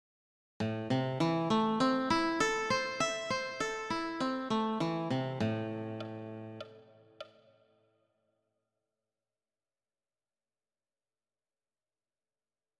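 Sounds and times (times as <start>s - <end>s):
guitar arpeggio in A minor: 0.6s - 6.7s.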